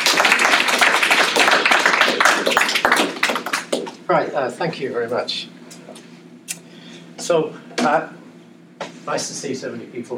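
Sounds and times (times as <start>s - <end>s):
audience applause welcoming two speakers at the Northside Library: 0.0s - 4.0s
speech: 4.1s - 5.6s, 7.3s - 8.2s, 9.0s - 10.1s.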